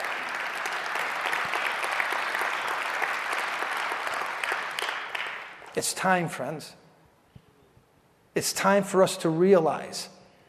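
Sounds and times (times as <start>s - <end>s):
audience clapping: 0.0s - 6.0s
speech: 5.8s - 6.8s, 8.4s - 10.2s.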